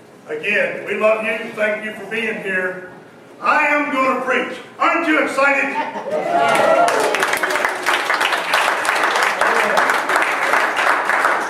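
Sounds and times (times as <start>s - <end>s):
speech: 0.3s - 7.2s
laughter: 5.6s - 7.8s
audience applause: 6.3s - 11.4s.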